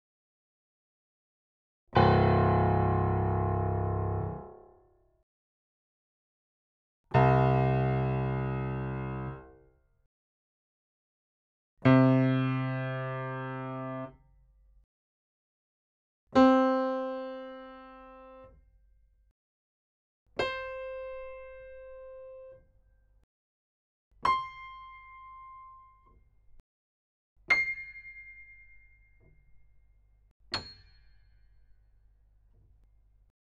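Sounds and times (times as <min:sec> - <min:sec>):
piano with hammered strings: 0:01.9 - 0:05.0, 0:07.1 - 0:09.7, 0:11.8 - 0:14.2, 0:16.4 - 0:18.6, 0:20.4 - 0:22.8, 0:24.2 - 0:26.6, 0:27.5 - 0:31.6.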